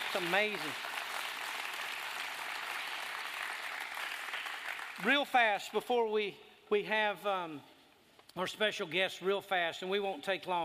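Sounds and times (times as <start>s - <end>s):
audience clapping: 0.0s - 5.2s
speech: 0.1s - 0.9s, 5.0s - 7.7s, 8.4s - 10.6s.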